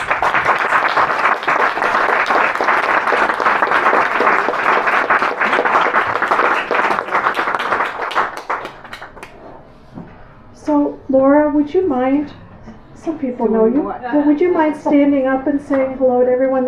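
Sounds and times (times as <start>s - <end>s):
audience clapping: 0.0s - 9.5s
speech: 11.2s - 12.4s, 13.0s - 16.6s.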